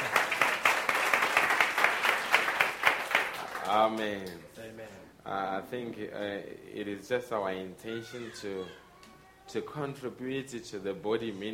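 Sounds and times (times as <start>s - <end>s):
audience clapping: 0.0s - 4.4s
speech: 3.8s - 8.8s, 9.5s - 11.5s.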